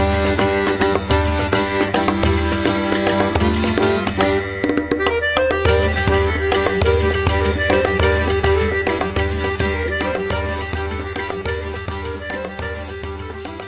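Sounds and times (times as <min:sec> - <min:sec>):
fife playing: 0:00.0 - 0:13.6.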